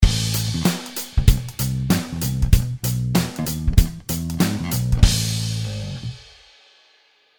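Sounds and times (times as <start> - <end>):
double kick drum: 0.0 - 0.4, 1.1 - 5.6.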